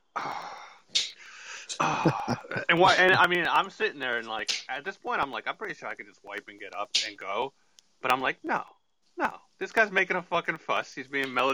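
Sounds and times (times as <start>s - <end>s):
voice imitating loud heavy breathing of a man pacing: 0.2s - 3.2s
laughter: 1.6s - 4.0s
speech: 1.8s - 11.5s.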